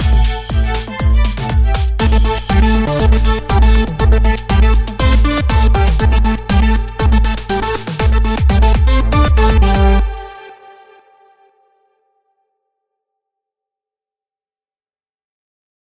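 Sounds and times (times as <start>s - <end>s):
trance music: 0.0s - 11.9s.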